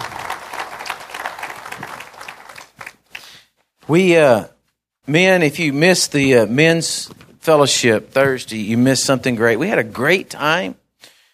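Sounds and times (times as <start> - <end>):
audience hand clapping: 0.0 - 3.6
speech: 3.9 - 4.5, 5.1 - 10.8.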